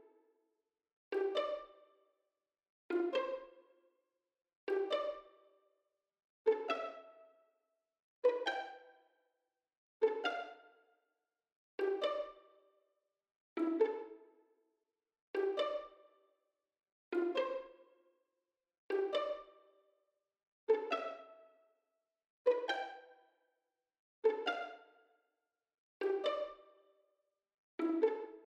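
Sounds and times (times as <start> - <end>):
pizzicato strings: 1.1 - 1.8, 2.9 - 3.5, 4.7 - 5.4, 6.5 - 7.2, 8.2 - 8.8, 10.0 - 10.6, 11.8 - 12.4, 13.6 - 14.2, 15.4 - 16.0, 17.2 - 17.7, 18.9 - 19.6, 20.7 - 21.4, 22.5 - 23.0, 24.2 - 24.8, 26.0 - 26.7, 27.8 - 28.4.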